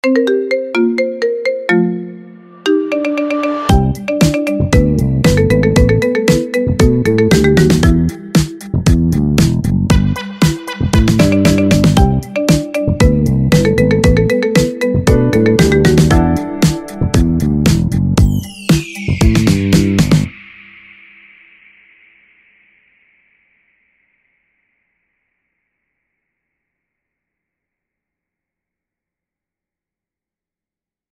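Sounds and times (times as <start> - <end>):
marimba: 0.0 - 9.0, 9.9 - 20.3.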